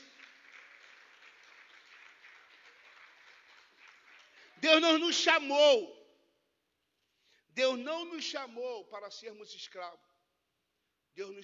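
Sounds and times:
crowd applauding: 0:00.0 - 0:05.0
speech: 0:04.6 - 0:06.0, 0:07.6 - 0:10.1, 0:11.2 - 0:11.4.

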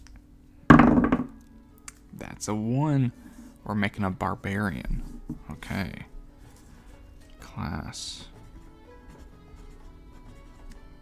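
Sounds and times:
twelve-sided die being rolled: 0:00.7 - 0:01.4
speech: 0:02.4 - 0:06.1, 0:07.6 - 0:08.3.

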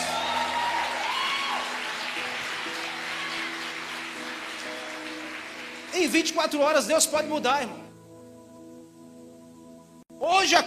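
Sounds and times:
crowd applause: 0:00.0 - 0:06.3
speech: 0:06.0 - 0:07.9, 0:10.3 - 0:10.6.

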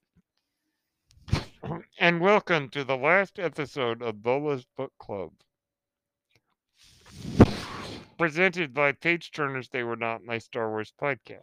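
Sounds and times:
speech: 0:02.1 - 0:05.5, 0:08.2 - 0:11.4
medical ventilator cycling with breathy whooshes of air: 0:07.0 - 0:08.1.

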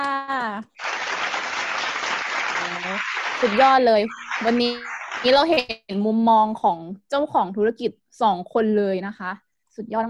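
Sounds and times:
audience applause: 0:00.6 - 0:05.7
speech: 0:02.8 - 0:10.0.

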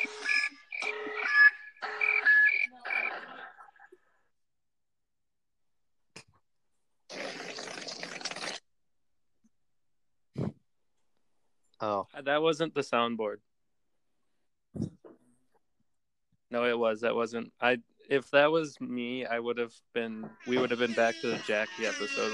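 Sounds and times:
tactical nuke incoming alarm buzzing tonal pulses: 0:00.0 - 0:03.4
speech: 0:11.8 - 0:13.5, 0:16.5 - 0:22.3.

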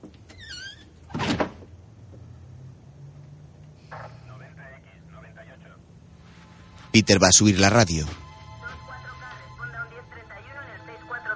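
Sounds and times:
door being forced open with a creaking squeal: 0:00.0 - 0:01.7
low steady hum: 0:01.0 - 0:11.3
speech: 0:07.0 - 0:08.2.

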